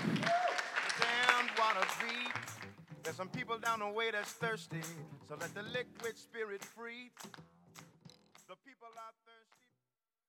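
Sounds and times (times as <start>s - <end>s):
audience applause: 0.0s - 2.8s
speech: 3.1s - 7.6s.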